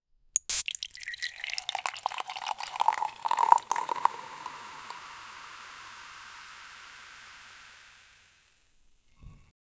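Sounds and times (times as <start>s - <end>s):
beer pouring from a tap in a bar: 0.4s - 9.4s.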